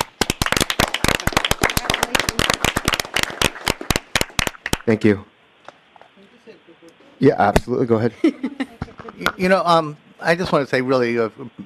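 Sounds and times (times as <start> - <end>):
applause from a small group: 0.0 - 5.0
speech: 4.9 - 5.3, 7.2 - 11.6.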